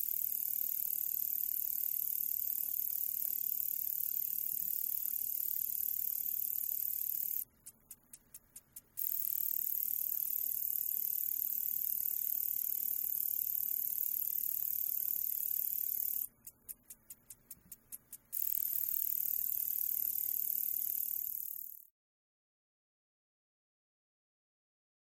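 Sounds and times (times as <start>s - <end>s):
slender meadow katydid Conocephalus fasciatus buzzing and ticking: 0.0s - 21.9s.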